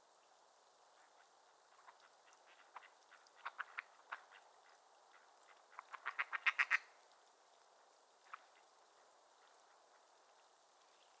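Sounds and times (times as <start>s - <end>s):
mallard quacking: 2.5s - 4.4s, 5.7s - 6.9s.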